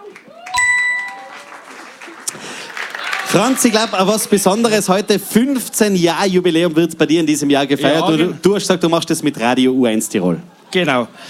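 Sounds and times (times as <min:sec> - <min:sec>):
audience applause: 0:00.0 - 0:04.7
speech: 0:03.4 - 0:11.2.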